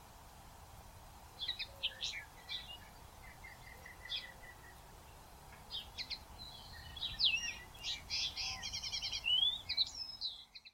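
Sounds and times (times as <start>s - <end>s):
common linnet calling: 1.4s - 4.8s, 5.7s - 10.7s.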